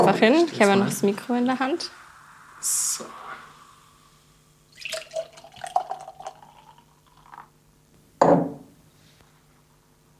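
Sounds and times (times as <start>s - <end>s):
speech: 0.0s - 2.0s, 2.6s - 3.2s
drink poured into a glass: 4.7s - 7.6s.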